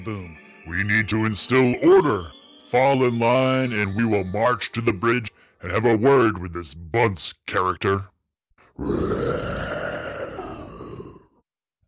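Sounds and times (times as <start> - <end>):
speech: 0.0 - 8.1, 8.8 - 9.6
long deep rasping monster roar: 8.8 - 11.4.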